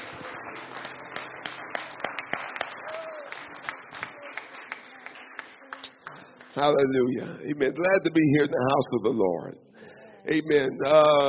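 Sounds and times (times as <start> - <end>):
audience clapping hands: 0.0 - 6.9
speech: 6.6 - 9.6, 10.2 - 11.2.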